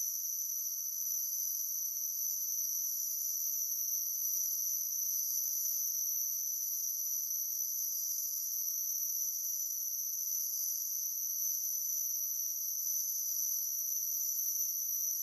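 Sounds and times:
insect high-pitched chirping: 0.0s - 15.2s.

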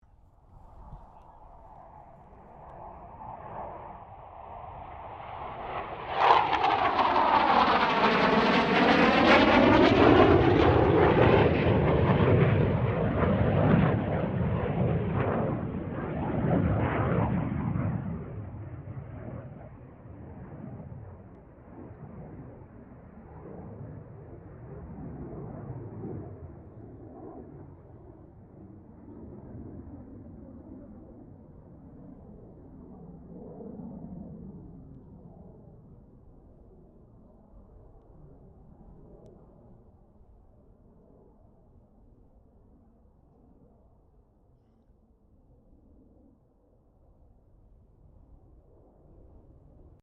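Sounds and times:
CA-27 Sabre jet aircraft passing: 0.4s - 40.4s.

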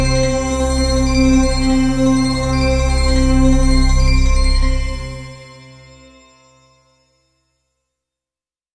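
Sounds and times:
horror synth stab: 0.0s - 5.4s
creepy horror drone: 0.0s - 5.7s
creepy musical chimes: 0.0s - 7.8s.

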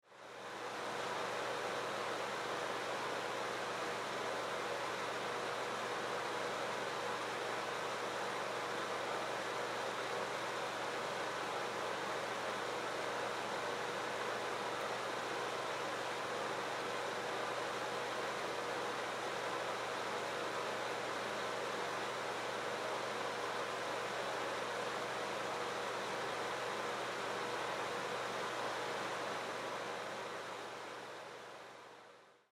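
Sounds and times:
household bathroom fan: 0.0s - 32.5s.

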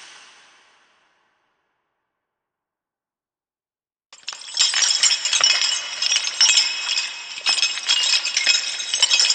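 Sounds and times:
ghostly chains rattling with large space ambiance: 4.3s - 9.3s.

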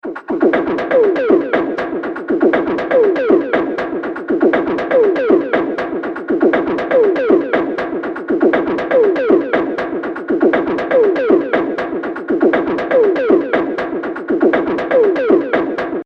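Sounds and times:
vocal beatbox loop at 120 bpm: 0.0s - 16.0s.

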